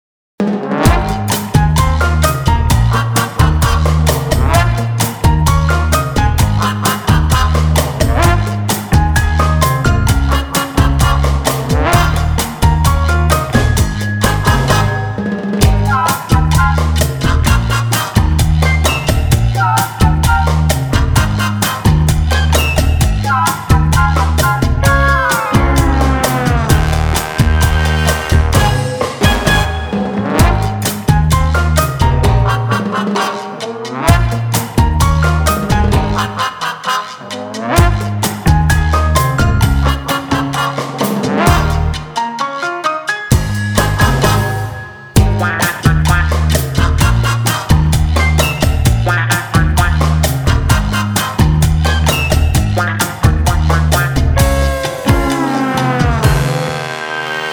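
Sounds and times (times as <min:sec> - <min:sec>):
cha cha music: 0:00.4 - 0:57.5.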